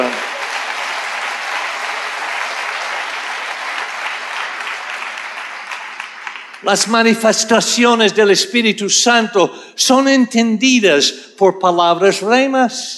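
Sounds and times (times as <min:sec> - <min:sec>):
sustained applause from a crowd: 0:00.0 - 0:07.2
speech: 0:06.6 - 0:12.9.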